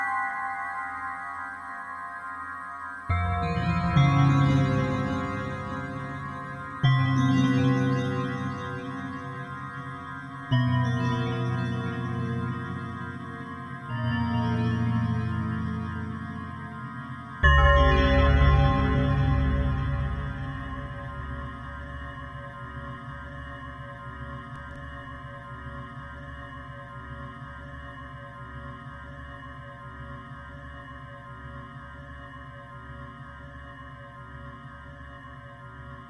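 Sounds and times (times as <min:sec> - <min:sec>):
bell: 0:00.0 - 0:23.4.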